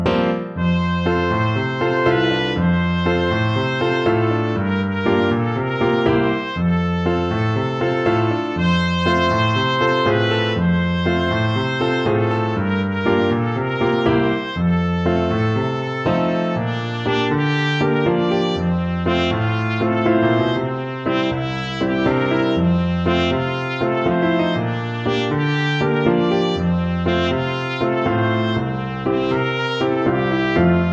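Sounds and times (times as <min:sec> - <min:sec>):
trumpet duet: 0:00.1 - 0:30.9.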